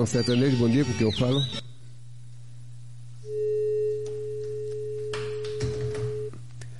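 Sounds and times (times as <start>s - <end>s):
speech: 0.0s - 1.7s
low electrical hum: 0.0s - 6.7s
dropped phone call tone: 3.3s - 6.4s.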